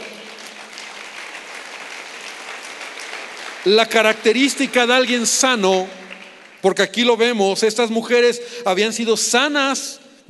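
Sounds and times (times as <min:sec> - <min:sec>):
crowd clapping: 0:00.0 - 0:07.4
speech: 0:03.6 - 0:06.0, 0:06.6 - 0:10.2.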